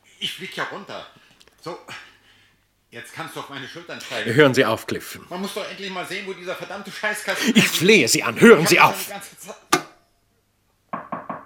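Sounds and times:
speech: 0.2 - 2.1, 2.9 - 9.7
laughter: 7.1 - 9.1
firm knocking on a door: 11.0 - 11.4.

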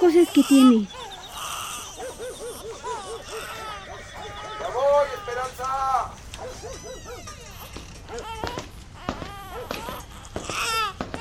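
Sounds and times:
speech: 0.0 - 1.1
adult voices: 0.0 - 7.0
baby girl crying: 0.0 - 11.2.

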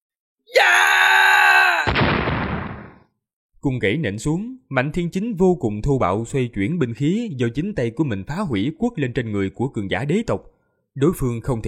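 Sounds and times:
man screaming in fear: 0.5 - 1.9
speech: 3.6 - 11.6.

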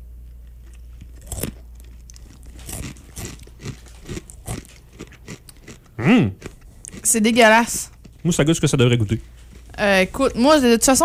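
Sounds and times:
crunchy chewing of a snack mix with honey-coated pieces and chocolate: 0.3 - 8.4, 9.0 - 10.4
loud voiced sound: 6.0 - 6.4
speech: 6.0 - 6.5, 7.1 - 11.0.

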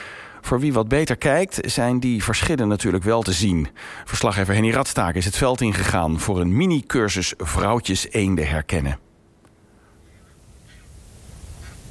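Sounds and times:
speech: 0.5 - 9.1
geese in the Arkemheen polder giving alarm calls: 9.8 - 11.0.

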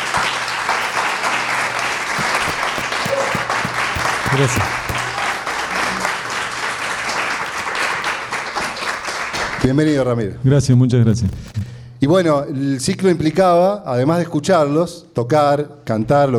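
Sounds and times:
audience applause: 0.0 - 9.7
speech: 4.3 - 4.8, 9.7 - 16.3.

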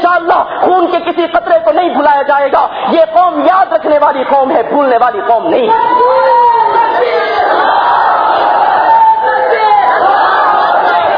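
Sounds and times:
speech: 0.2 - 7.2
large crowd chanting slogans at a public address: 6.8 - 11.1.

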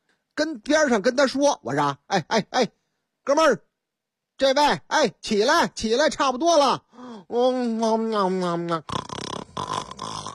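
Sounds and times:
speech: 0.4 - 3.7, 4.4 - 9.0
person imitating snoring: 8.7 - 10.3.

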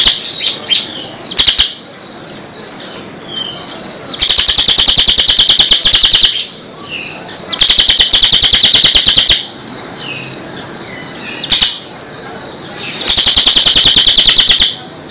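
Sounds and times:
sunbird song trill: 0.0 - 15.0.

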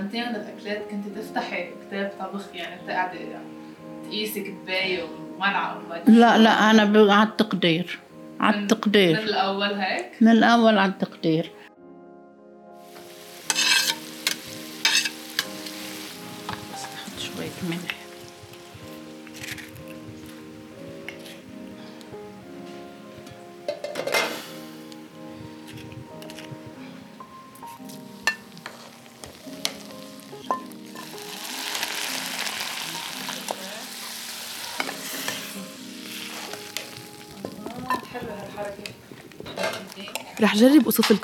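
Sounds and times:
speech: 0.1 - 11.7, 17.6 - 18.0, 40.6 - 41.2
onion and garlic frying in oil and ghee with spices: 12.8 - 22.0, 23.9 - 26.5, 27.5 - 41.2
utensil stirring and clinking against the pan: 13.5 - 15.5.

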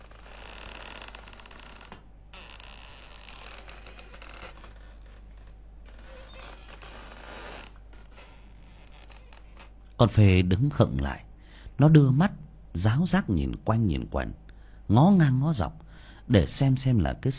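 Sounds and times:
swinging hammock creaking in a bedroom: 0.0 - 9.8
speech: 10.0 - 17.3.

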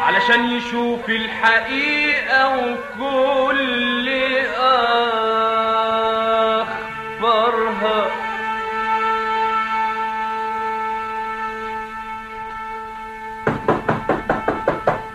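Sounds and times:
speech: 0.0 - 5.5
droning musical tone: 0.0 - 15.1
knocking on a door: 13.5 - 15.1.

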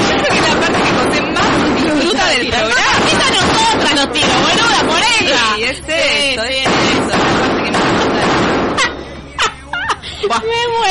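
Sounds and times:
gunfire sound effect played on a radio show: 0.0 - 5.4, 6.6 - 9.0
voices: 0.0 - 10.8
laughter: 8.1 - 10.7.

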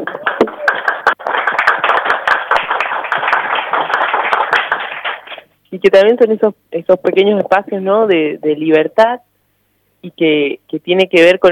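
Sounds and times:
audience applause: 0.0 - 5.5
speech: 5.8 - 9.3, 10.0 - 11.4.

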